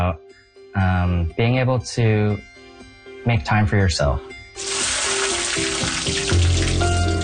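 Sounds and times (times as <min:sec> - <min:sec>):
speech: 0:00.0 - 0:02.6, 0:03.2 - 0:05.0
butter and diced onion frying in a hot pan: 0:04.6 - 0:07.2.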